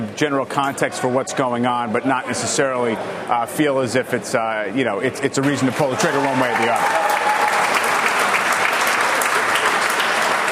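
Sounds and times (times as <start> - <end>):
speech: 0.2 - 7.4
applause: 5.7 - 10.5.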